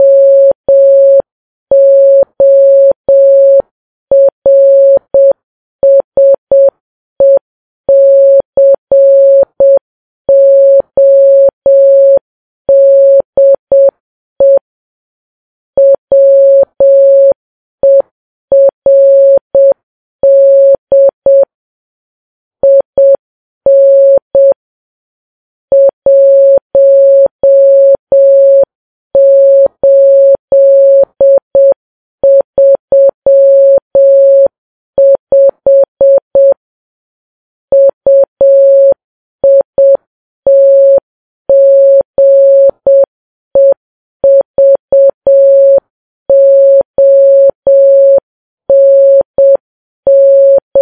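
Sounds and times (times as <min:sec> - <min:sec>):
morse code beeps: 0:00.0 - 0:14.6, 0:15.8 - 0:21.5, 0:22.6 - 0:24.6, 0:25.7 - 0:36.6, 0:37.7 - 0:50.7.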